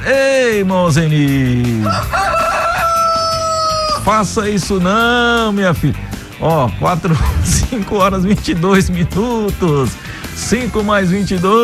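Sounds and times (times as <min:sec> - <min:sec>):
speech: 0:00.0 - 0:02.4, 0:04.0 - 0:11.6
rooster crowing: 0:01.8 - 0:04.1.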